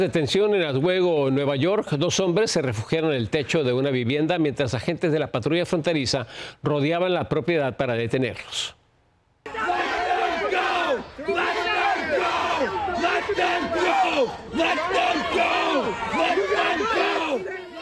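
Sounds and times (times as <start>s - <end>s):
speech: 0.0s - 8.8s
crowd of protesters shouting: 9.5s - 17.7s.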